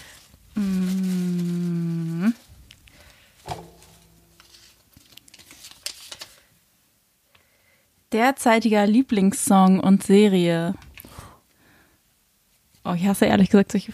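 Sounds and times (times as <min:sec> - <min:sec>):
rustling: 0:00.0 - 0:06.5
speech: 0:08.2 - 0:10.8, 0:12.9 - 0:13.9.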